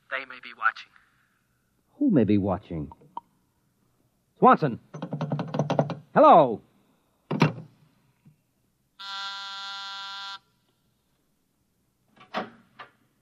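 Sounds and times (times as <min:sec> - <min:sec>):
speech: 0:00.1 - 0:01.0, 0:02.0 - 0:03.0, 0:04.4 - 0:05.0, 0:06.2 - 0:06.7
knocks: 0:04.9 - 0:06.1, 0:07.3 - 0:07.7
intercom buzzer: 0:09.0 - 0:10.4.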